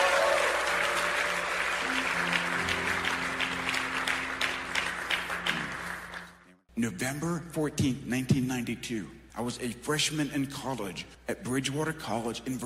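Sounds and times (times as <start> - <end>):
audience applause: 0.0 - 6.5
speech: 6.8 - 12.6.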